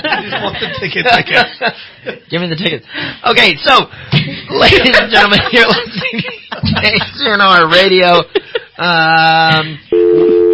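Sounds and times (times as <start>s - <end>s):
laughter: 0.0s - 2.3s, 4.2s - 9.8s
speech: 0.2s - 10.3s
telephone line tone after a caller to a radio station hangs up: 9.9s - 10.5s.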